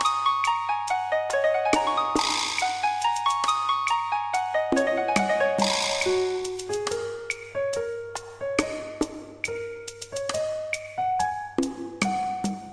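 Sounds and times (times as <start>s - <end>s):
oriental style fantasy music: 0.0s - 12.7s.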